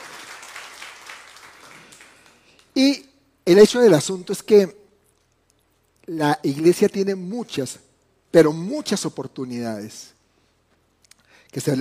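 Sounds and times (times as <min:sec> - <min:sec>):
audience applause: 0:00.0 - 0:02.6
speech: 0:02.8 - 0:04.8, 0:06.1 - 0:10.2, 0:11.5 - 0:11.7.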